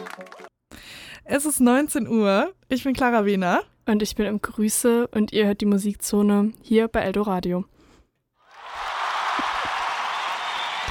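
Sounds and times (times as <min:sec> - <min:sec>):
applause: 0:00.0 - 0:00.5, 0:08.5 - 0:10.8
speech: 0:01.3 - 0:07.8.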